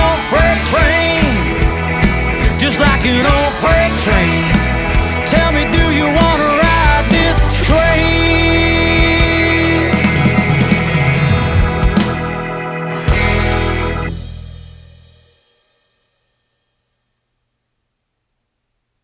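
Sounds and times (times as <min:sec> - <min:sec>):
modern six-piece country rock band playing live in UK: 0:00.0 - 0:14.5.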